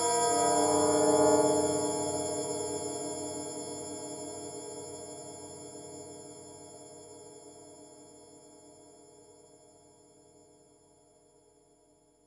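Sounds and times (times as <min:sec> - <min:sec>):
tubular bell sound on a synthesizer: 0:00.0 - 0:02.9.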